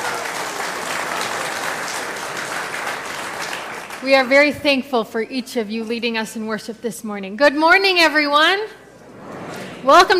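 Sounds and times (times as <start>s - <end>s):
applause for a worship band: 0.0s - 4.4s
speech: 4.0s - 8.8s, 9.8s - 10.1s.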